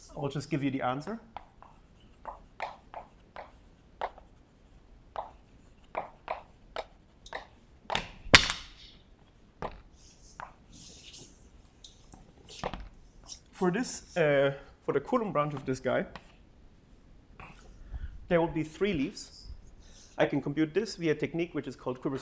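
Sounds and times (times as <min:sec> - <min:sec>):
speech: 0:00.1 - 0:01.4, 0:13.6 - 0:16.2, 0:18.3 - 0:19.4, 0:20.2 - 0:22.1
chalk drawing on a board during a mathematics lecture: 0:01.3 - 0:04.4, 0:05.1 - 0:07.6.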